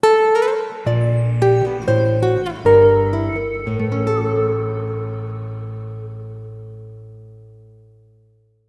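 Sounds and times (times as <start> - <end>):
lyrical lute melody: 0.0 - 7.2.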